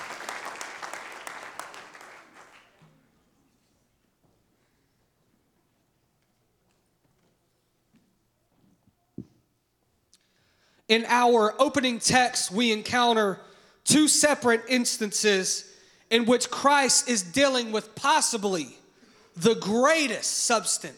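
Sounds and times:
audience clapping hands: 0:00.0 - 0:03.0
speech: 0:10.9 - 0:18.8, 0:19.4 - 0:20.9.

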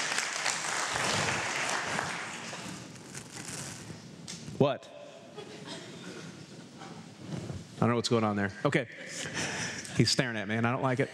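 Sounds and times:
audience applause: 0:00.0 - 0:02.9
speech: 0:04.6 - 0:05.6, 0:07.8 - 0:11.1.

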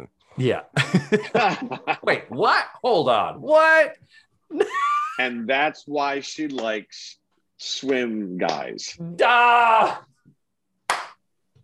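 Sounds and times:
speech: 0:00.4 - 0:10.1
slow clap: 0:10.8 - 0:11.6.

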